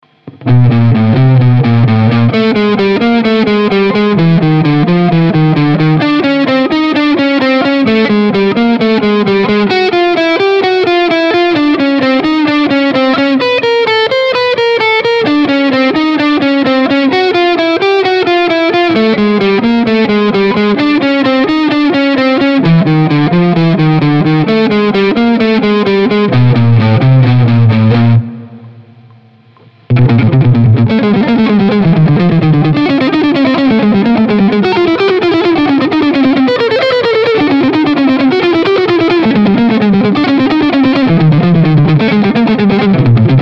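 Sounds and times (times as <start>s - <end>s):
guitar string-skipping exercise on one string: 0.0s - 43.4s.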